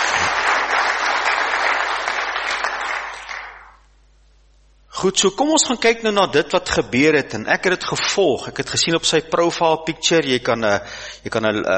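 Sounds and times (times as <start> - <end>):
audience applause: 0.0 - 3.8
speech: 5.0 - 11.7.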